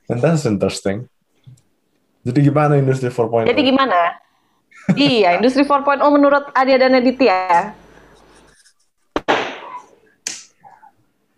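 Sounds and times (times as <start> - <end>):
speech: 0.1 - 1.2, 2.2 - 7.8
firecrackers going off: 9.2 - 9.9.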